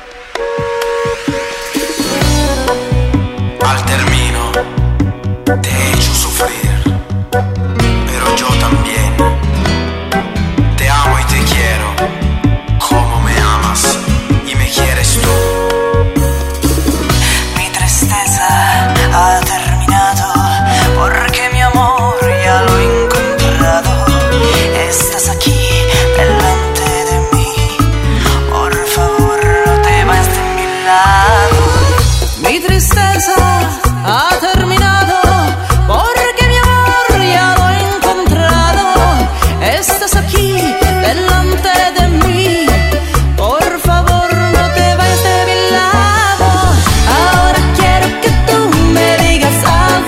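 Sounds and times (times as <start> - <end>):
bachata tango music: 0.3 - 50.0.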